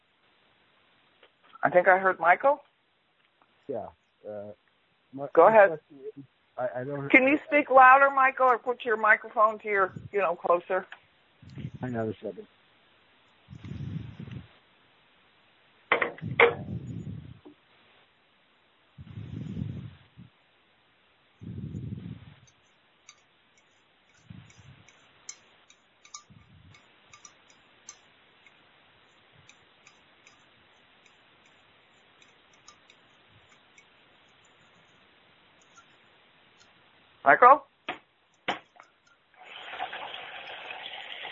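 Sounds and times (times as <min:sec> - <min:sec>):
speech: 0:01.6 - 0:02.7, 0:03.7 - 0:12.6, 0:37.3 - 0:37.7
dishes being washed: 0:23.1 - 0:28.0, 0:38.6 - 0:41.3.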